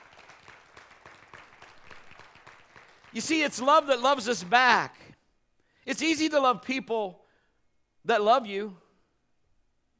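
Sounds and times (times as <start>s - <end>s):
audience applause: 0.0s - 3.4s
speech: 3.1s - 5.0s, 5.8s - 7.2s, 8.0s - 8.8s.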